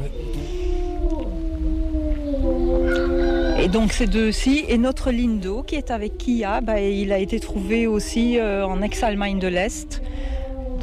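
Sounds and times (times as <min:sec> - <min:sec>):
gray wolves howling: 0:00.0 - 0:10.8
speech: 0:03.6 - 0:10.0.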